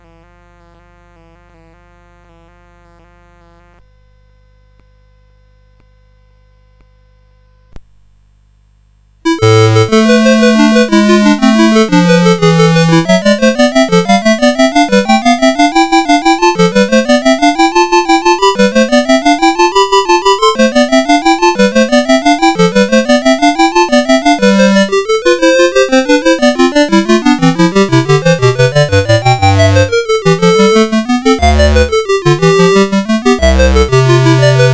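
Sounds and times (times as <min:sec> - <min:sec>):
gigue on CSG8580R5 sound chip: 0:09.3 - 0:34.7.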